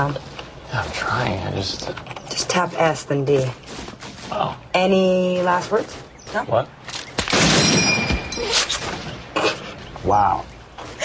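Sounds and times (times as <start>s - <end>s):
speech: 0.0s - 6.8s, 10.0s - 10.5s
rifle gunshot in a video game: 7.2s - 8.3s.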